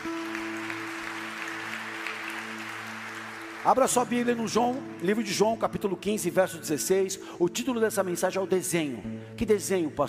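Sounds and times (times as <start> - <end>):
audience applause: 0.0 - 5.0
speech: 3.6 - 10.0.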